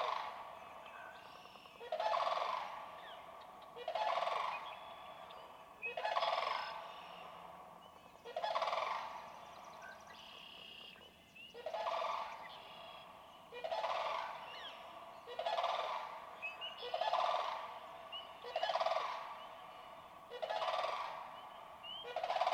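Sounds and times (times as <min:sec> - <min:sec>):
sandhill crane calling: 0:00.0 - 0:22.5.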